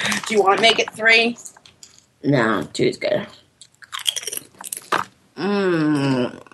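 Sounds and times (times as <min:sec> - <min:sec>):
speech: 0:00.3 - 0:01.5, 0:02.2 - 0:03.4, 0:05.4 - 0:06.5
person chewing and crunching blue chips: 0:03.6 - 0:05.1
person humming a moan of enjoyment: 0:05.4 - 0:06.5.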